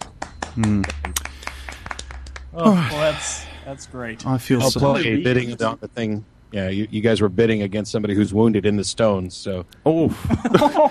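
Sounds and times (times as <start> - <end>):
small group applause: 0.0 - 3.0
speech: 0.6 - 1.2, 2.5 - 10.8
laughter: 10.1 - 10.8.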